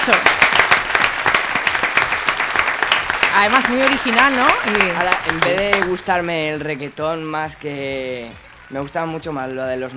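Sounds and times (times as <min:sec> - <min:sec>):
speech: 0:00.0 - 0:00.4, 0:03.4 - 0:09.9
audience applause for a DJ: 0:00.0 - 0:06.3.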